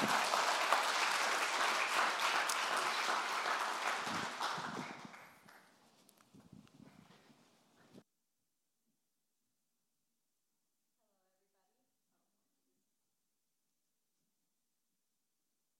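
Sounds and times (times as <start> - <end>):
audience round of applause: 0.0 - 5.7.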